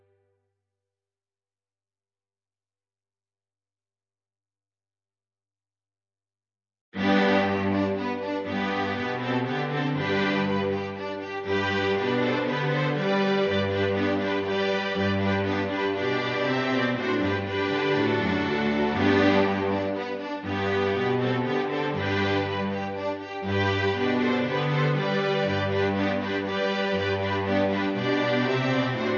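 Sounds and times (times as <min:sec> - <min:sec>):
classical divertimento in G major: 0:07.0 - 0:29.1.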